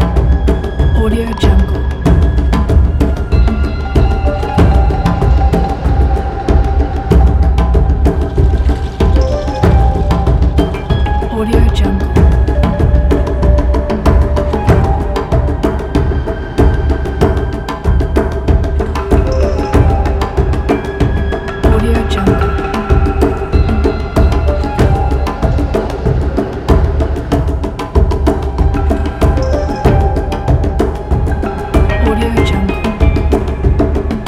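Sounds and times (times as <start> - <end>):
post-nuclear tribe drums game soundscape: 0.0 - 34.2.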